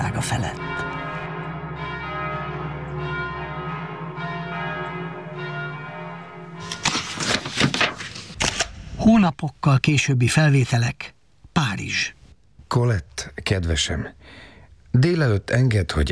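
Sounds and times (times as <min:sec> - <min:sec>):
thunderous church bells ringing: 0:00.0 - 0:07.6
speech: 0:00.2 - 0:00.8, 0:09.0 - 0:16.1.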